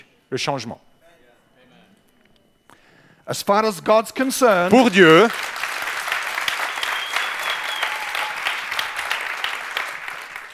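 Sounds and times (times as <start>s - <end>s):
speech: 0.3s - 0.9s, 3.3s - 5.5s
audience clapping: 4.3s - 10.5s.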